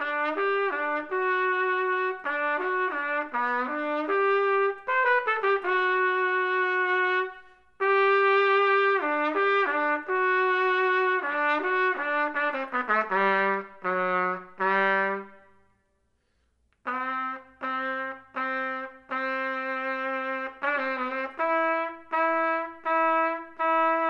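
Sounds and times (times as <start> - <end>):
trumpet playing maestoso: 0.0 - 15.8, 16.8 - 24.0.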